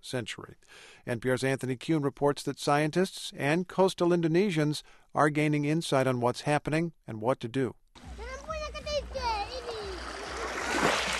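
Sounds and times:
speech: 0.0 - 8.3
rising tide lapping among mangrove trees at Tuoho in North Sulawesi, Indonesia: 8.0 - 11.1
children's voices: 8.1 - 10.4.

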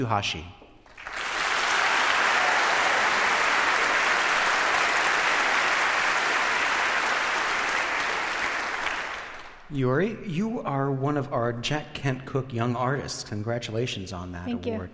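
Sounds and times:
speech: 0.0 - 0.6, 9.7 - 14.9
audience applause welcoming an 18-year-old violinist: 0.8 - 9.7.

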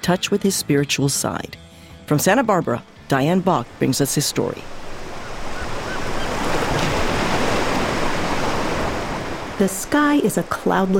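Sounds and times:
speech: 0.0 - 5.0, 9.6 - 10.9
ocean waves on a Southern California beach: 3.1 - 10.9.

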